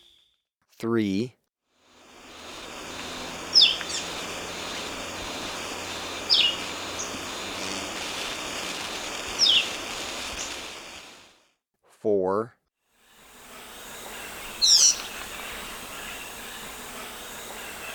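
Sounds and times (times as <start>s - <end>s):
speech: 0.8s - 1.4s, 12.0s - 12.6s
insect hum: 1.9s - 11.4s, 13.0s - 17.9s
red-eyed vireo singing downslurred phrases: 2.4s - 11.1s, 13.6s - 17.9s.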